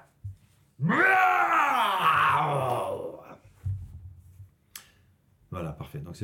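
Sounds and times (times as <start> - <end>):
speech: 0.8 - 1.2, 5.9 - 6.2
person imitating a lion's roar: 0.8 - 3.4
soft thumps: 3.5 - 4.5.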